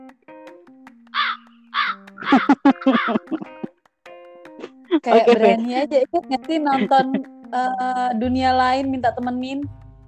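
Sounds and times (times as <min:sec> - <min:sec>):
crow cawing: 0:01.1 - 0:03.6
laughter: 0:02.2 - 0:03.7, 0:04.6 - 0:05.7, 0:06.5 - 0:07.2
speech: 0:02.4 - 0:03.5, 0:05.0 - 0:09.8.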